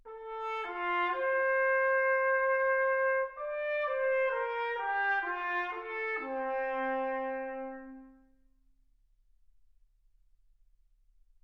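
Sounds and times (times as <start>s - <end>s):
trumpet: 0.0s - 8.5s.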